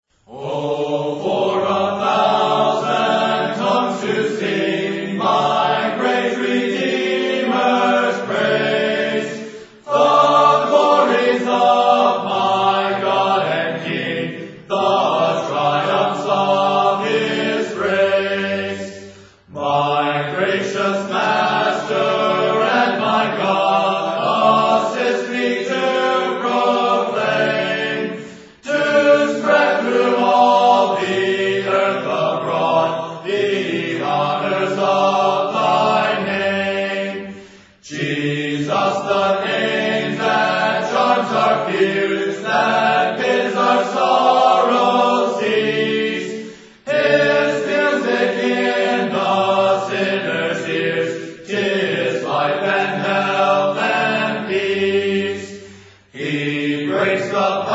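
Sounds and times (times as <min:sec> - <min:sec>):
a cappella hymn: 0:00.1 - 0:57.7.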